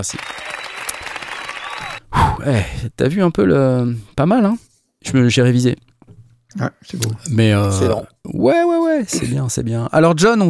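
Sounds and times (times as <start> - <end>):
speech: 0.0 - 0.5, 2.4 - 5.9, 6.5 - 10.4
applause: 0.0 - 2.0.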